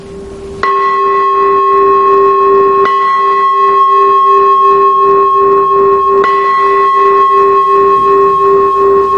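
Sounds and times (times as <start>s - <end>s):
temple bell rung for sutra chanting: 0.6s - 9.1s.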